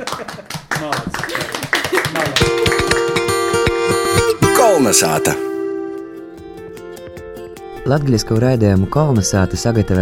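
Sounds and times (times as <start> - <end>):
applause: 0.0 - 3.6
bright musical jingle with a steady beat: 2.5 - 6.6
speech: 4.8 - 5.5, 7.9 - 10.0.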